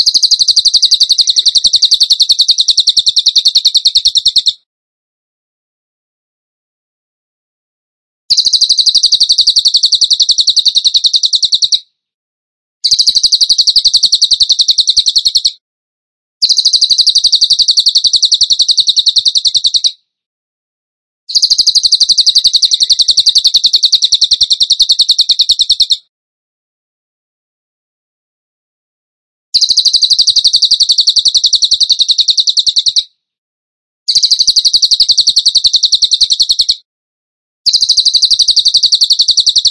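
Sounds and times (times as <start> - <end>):
bird rapid pulsed trills: 0.0 - 4.6, 8.3 - 11.8, 12.8 - 15.5, 16.4 - 19.9, 21.3 - 26.0, 29.6 - 33.0, 34.1 - 36.8, 37.7 - 39.6.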